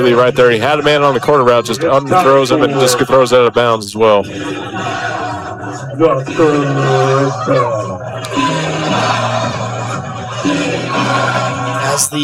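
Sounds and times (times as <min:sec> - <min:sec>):
speech: 0:00.0 - 0:08.5, 0:10.4 - 0:12.2
laughter: 0:00.0 - 0:12.2
piped-in stadium crowd noise: 0:00.0 - 0:12.2.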